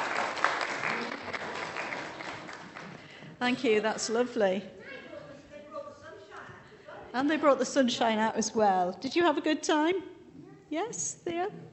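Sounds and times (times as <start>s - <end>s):
children clapping: 0.0s - 3.1s
speech: 3.4s - 4.8s, 7.1s - 10.1s, 10.7s - 11.6s.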